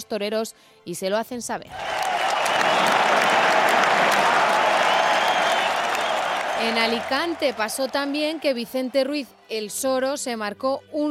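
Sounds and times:
speech: 0.1s - 2.0s, 6.6s - 11.0s
ovation from a large crowd: 1.7s - 9.2s.

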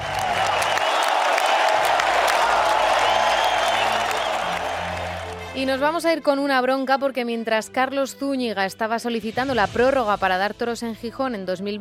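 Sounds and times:
scattered cheers and voices: 0.0s - 5.4s
large crowd ovation: 0.0s - 5.8s
speech: 5.6s - 11.8s.

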